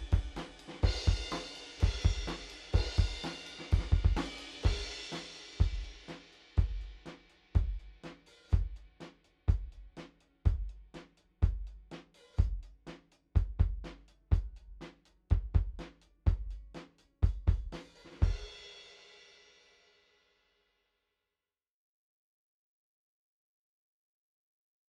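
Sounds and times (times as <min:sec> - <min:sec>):
kick drum: 0:00.0 - 0:04.9, 0:05.6 - 0:06.0, 0:06.6 - 0:07.0, 0:07.6 - 0:07.9, 0:08.5 - 0:08.8, 0:09.5 - 0:09.9, 0:10.5 - 0:11.8, 0:12.4 - 0:12.8, 0:13.4 - 0:18.4.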